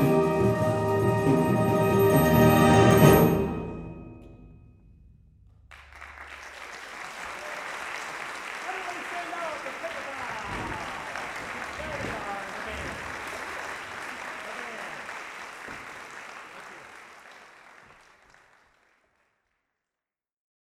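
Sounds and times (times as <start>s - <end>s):
fanfare: 0.0s - 4.2s.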